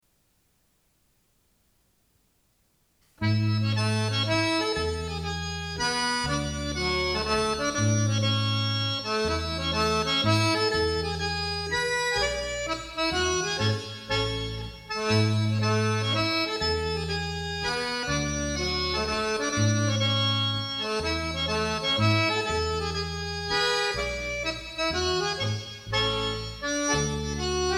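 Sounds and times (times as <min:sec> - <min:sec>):
polska dance tune: 0:03.2 - 0:27.7.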